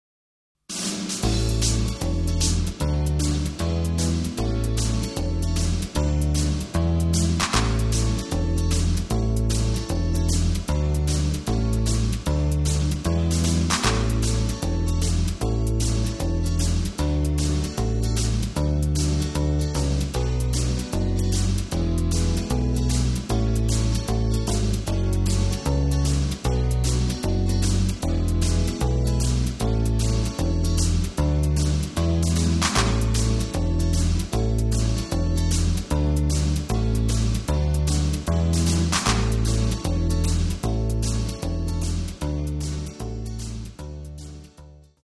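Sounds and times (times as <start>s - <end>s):
backing track in A without lead guitar: 0.7s - 44.5s.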